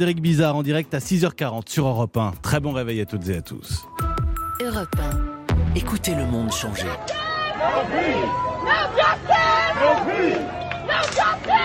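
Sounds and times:
speech: 0:00.0 - 0:04.0, 0:04.7 - 0:11.6
protesters chanting: 0:07.0 - 0:11.6.

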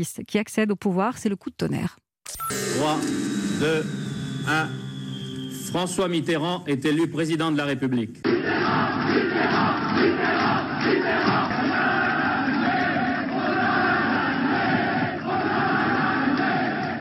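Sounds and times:
speech: 0:00.0 - 0:04.8, 0:05.7 - 0:11.4
jubilant crowd celebrating election victory: 0:08.3 - 0:17.0.

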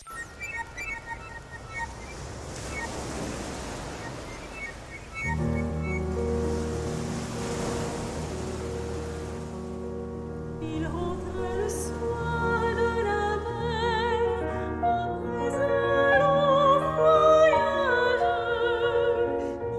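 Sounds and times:
sustained musical tones: 0:00.0 - 0:03.0, 0:04.4 - 0:13.2
sea waves surf: 0:00.0 - 0:19.6.

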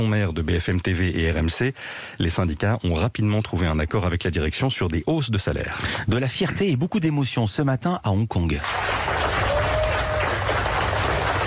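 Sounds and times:
speech: 0:00.0 - 0:09.4
applause from dozens of journalists: 0:08.6 - 0:11.4.

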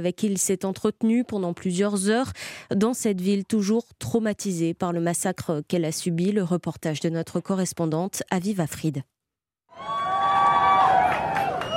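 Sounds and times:
speech: 0:00.0 - 0:09.1
crowd applause greeting arrival of Joe Biden in Uvalde: 0:09.8 - 0:11.7.

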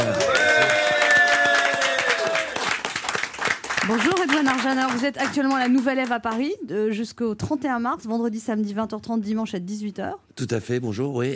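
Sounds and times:
audience applause: 0:00.0 - 0:05.9
speech: 0:04.6 - 0:11.3.

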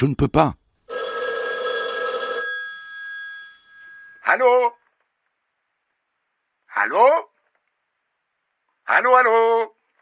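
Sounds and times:
speech: 0:00.0 - 0:00.6, 0:04.3 - 0:04.8, 0:06.8 - 0:07.3, 0:08.9 - 0:09.8
1980s landline telephone ringing with a bright trilling tone: 0:00.9 - 0:04.4.

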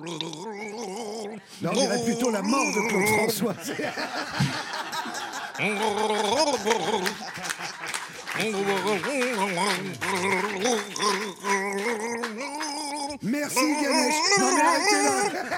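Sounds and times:
speech: 0:00.0 - 0:00.6, 0:01.6 - 0:04.8, 0:05.6 - 0:07.8, 0:08.4 - 0:11.5, 0:13.2 - 0:15.5
game show contestant gargling a pop tune: 0:00.0 - 0:03.3, 0:05.6 - 0:07.3, 0:08.4 - 0:15.5
laughter: 0:03.0 - 0:12.4, 0:13.6 - 0:15.5.

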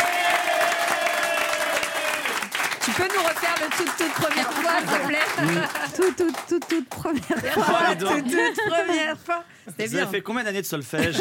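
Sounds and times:
audience applause greeting a female singer: 0:00.0 - 0:08.5
speech: 0:02.8 - 0:11.1
laughter: 0:04.1 - 0:10.2, 0:10.9 - 0:11.1.

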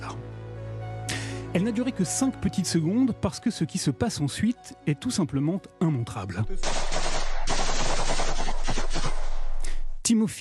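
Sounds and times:
speech: 0:01.5 - 0:07.1, 0:10.1 - 0:10.3
burst of automatic weapons fire: 0:06.6 - 0:09.6.

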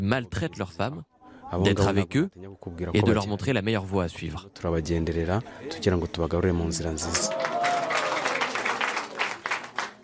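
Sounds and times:
speech: 0:00.0 - 0:07.7
applause at end of village meeting: 0:07.0 - 0:10.0.

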